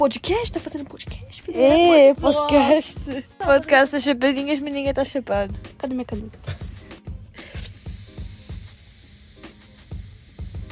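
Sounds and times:
speech: 0.0s - 6.6s
asthma inhaler spray being puffed: 6.6s - 10.7s.

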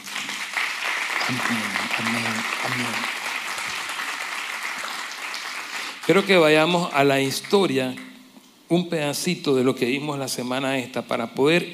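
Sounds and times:
audience applause: 0.0s - 6.2s
speech: 1.3s - 3.2s, 6.1s - 8.1s, 8.7s - 11.7s.

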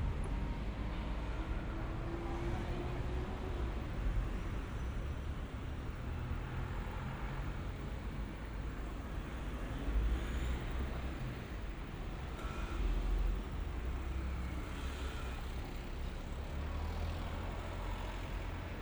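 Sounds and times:
traffic rumble in Shibuya Tokyo: 0.0s - 18.8s.

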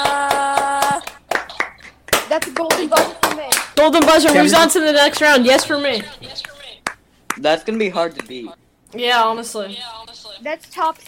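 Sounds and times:
clapping for a standing ovation: 0.0s - 8.4s
speech: 3.8s - 6.5s, 7.4s - 11.0s.

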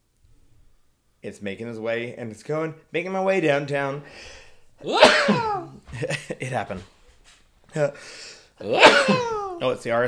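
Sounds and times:
speech: 1.2s - 7.0s, 7.7s - 10.0s
sneeze: 4.8s - 5.8s, 8.6s - 9.6s.

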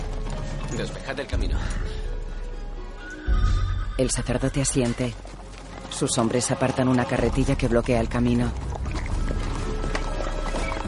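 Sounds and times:
horses' hooves clattering as helmeted riders pass by on horseback: 0.0s - 1.6s, 4.0s - 10.8s
speech: 0.7s - 2.0s, 3.3s - 5.3s, 6.0s - 8.8s.

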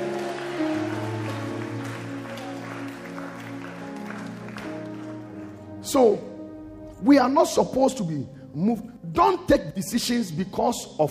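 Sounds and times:
audience clapping: 0.0s - 5.8s
speech: 5.9s - 6.3s, 7.0s - 11.0s.

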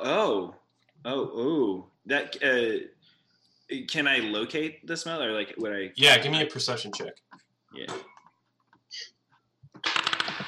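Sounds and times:
speech: 0.0s - 3.0s, 3.7s - 8.1s
dice rolling on a table during a tabletop role-playing game: 9.8s - 10.4s.

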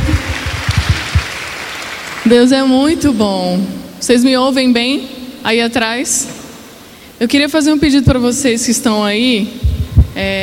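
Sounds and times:
dull beats: 0.0s - 1.5s, 9.6s - 10.4s
audience applauding: 0.0s - 2.3s
speech: 2.3s - 6.4s, 7.2s - 10.4s.

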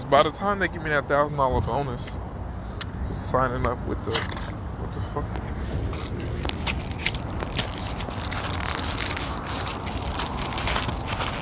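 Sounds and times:
speech: 0.1s - 2.3s, 3.1s - 5.9s
crumpled cigarette pack being handled: 6.0s - 11.4s.

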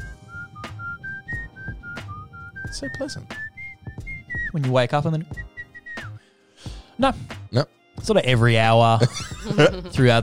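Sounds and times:
person whistling in imitation of budgie chirping: 0.0s - 4.6s, 5.4s - 6.2s
speech: 2.7s - 3.4s, 4.5s - 5.5s, 7.0s - 10.2s
laughter: 9.0s - 10.1s.

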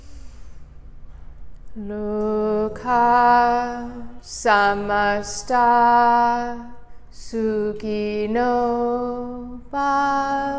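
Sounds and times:
deep breath in before chanting: 0.0s - 1.4s
speech: 1.8s - 10.5s.

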